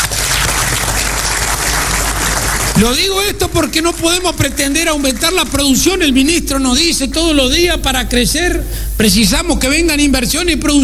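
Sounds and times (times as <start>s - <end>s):
applause for civil servants: 0.0s - 6.0s
speech: 2.8s - 10.8s.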